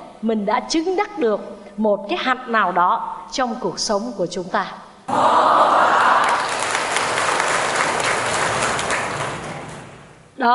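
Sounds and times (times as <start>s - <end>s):
speech: 0.2s - 5.9s
Buddhist talk audience applause: 5.1s - 10.2s.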